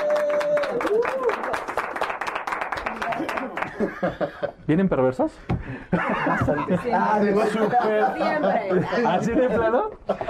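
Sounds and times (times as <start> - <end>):
audience applause: 0.0 - 3.8
laughter: 3.6 - 4.6, 5.9 - 10.2
speech: 3.8 - 10.2.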